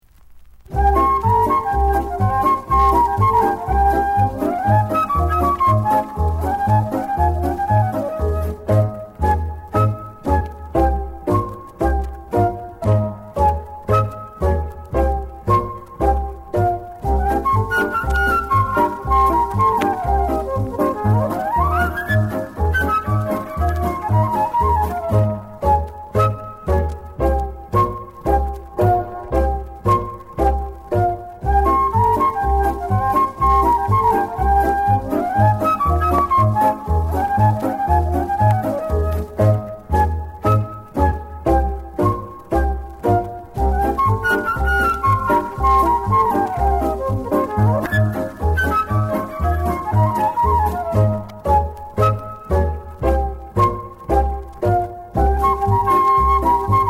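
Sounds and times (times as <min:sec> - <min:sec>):
flute playing in traffic jam: 0:00.7 - 0:56.8.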